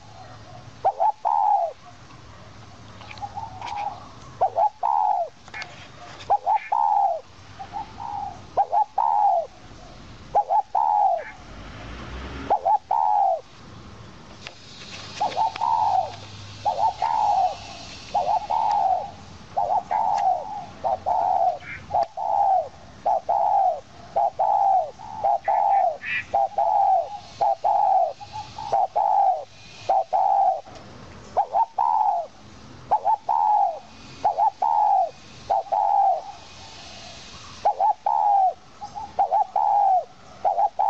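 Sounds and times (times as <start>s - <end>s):
owl call: 0.0s - 1.8s, 3.2s - 5.4s, 6.3s - 11.4s, 12.5s - 13.4s, 15.0s - 30.7s, 31.4s - 40.8s.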